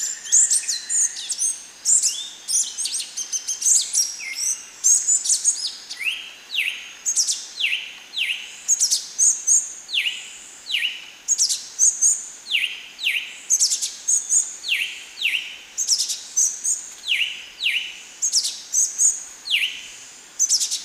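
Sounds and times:
ochre-breasted tanager calls: 0.0 - 8.9
faint hiss: 0.0 - 20.8.

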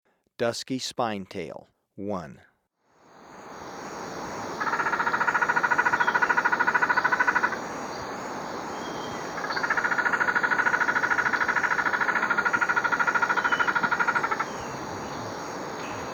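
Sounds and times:
Dusky Spinetail repeating a rapid nasal rattle in Ecuador: 4.5 - 16.1.

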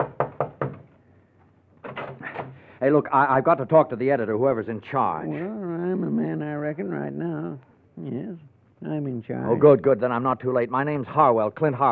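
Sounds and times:
fist pounding on a copy room door: 0.0 - 0.9
speech: 2.8 - 11.9.

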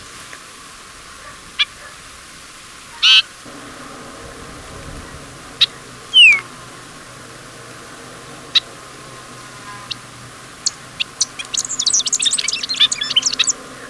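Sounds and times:
Golden-rumped Euphonia vocalizing in Ecuador: 3.0 - 13.8.

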